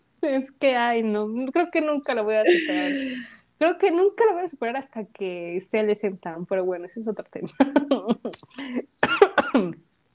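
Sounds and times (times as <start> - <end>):
speech: 0.2 - 9.8
person coughing almost choking: 9.0 - 9.8.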